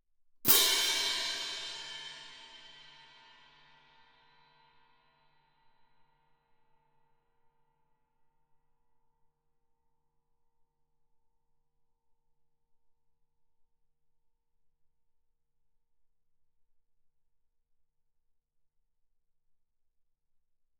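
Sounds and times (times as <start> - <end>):
loud orchestral crash cymbals: 0.5 - 4.1.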